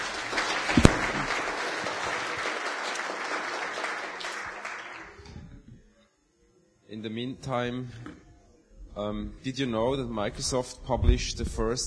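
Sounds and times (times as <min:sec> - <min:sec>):
audience applause: 0:00.0 - 0:05.4
speech: 0:07.0 - 0:08.1, 0:09.0 - 0:11.8.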